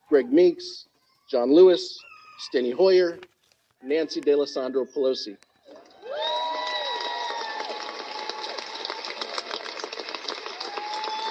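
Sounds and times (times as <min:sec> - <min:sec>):
speech: 0:00.1 - 0:05.9
audience applauding and cheering: 0:05.7 - 0:11.2.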